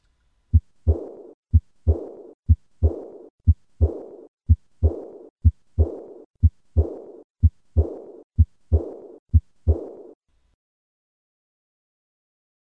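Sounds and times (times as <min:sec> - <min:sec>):
heart sounds with aortic regurgitation murmur at fourth left intercostal space: 0:00.5 - 0:10.1.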